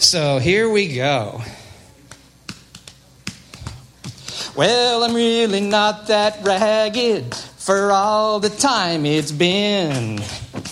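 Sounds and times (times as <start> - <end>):
faint low musical hum: 0.0 - 10.7
speech: 0.1 - 1.6, 4.6 - 10.5
audience finger snapping along with song: 2.0 - 7.5, 9.2 - 10.7.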